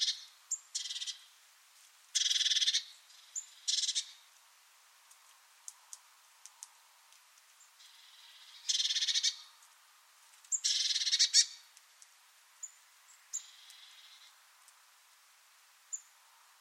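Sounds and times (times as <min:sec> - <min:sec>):
harsh buzzy high-pitched bird calls: 0:00.0 - 0:01.3, 0:02.2 - 0:04.3, 0:07.6 - 0:09.6, 0:10.5 - 0:11.7, 0:12.6 - 0:14.4.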